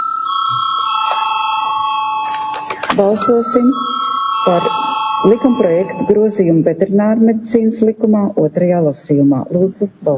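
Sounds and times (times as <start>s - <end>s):
parliament chamber bell ringing: 0.0s - 6.5s
speech: 3.0s - 10.1s.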